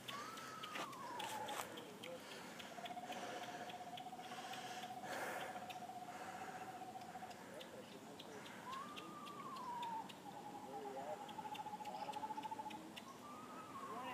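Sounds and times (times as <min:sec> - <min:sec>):
constant hiss: 0:00.0 - 0:14.1
clear mid-pitched whistling: 0:08.7 - 0:10.1, 0:13.1 - 0:14.1.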